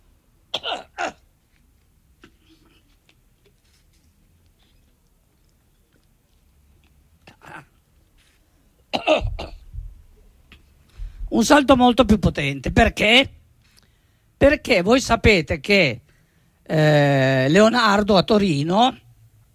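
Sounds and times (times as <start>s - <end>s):
coughing fit: 0.5s - 1.3s, 8.9s - 9.7s
speech: 11.4s - 13.4s, 14.4s - 16.0s, 16.7s - 19.0s.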